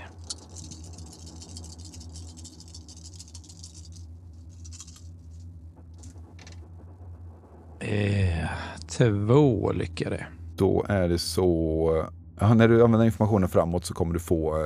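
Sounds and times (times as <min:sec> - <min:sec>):
handful of dice rattling: 0:00.0 - 0:06.6
steady low hum: 0:00.0 - 0:14.6
speech: 0:07.9 - 0:14.6.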